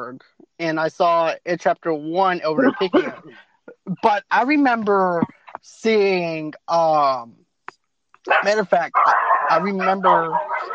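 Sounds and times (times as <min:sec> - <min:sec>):
speech: 0:00.0 - 0:07.4, 0:08.2 - 0:10.5
laughter: 0:02.4 - 0:05.3
dogs barking and yipping: 0:08.2 - 0:10.7.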